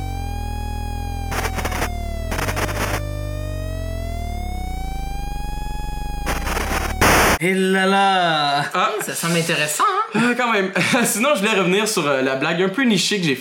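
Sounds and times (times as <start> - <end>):
looping fire engine siren sound effect: 0.0 - 7.4
speech: 7.4 - 13.4
laughter: 8.9 - 11.3.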